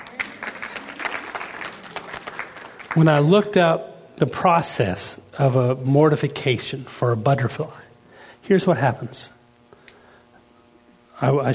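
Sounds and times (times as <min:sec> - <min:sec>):
light audience applause at a talk: 0:00.0 - 0:03.3
speech: 0:02.9 - 0:07.8, 0:08.5 - 0:09.4, 0:11.2 - 0:11.5.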